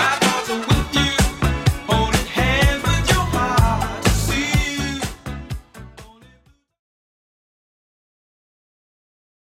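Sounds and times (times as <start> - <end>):
70s drum machine beat: 0.0 - 6.2.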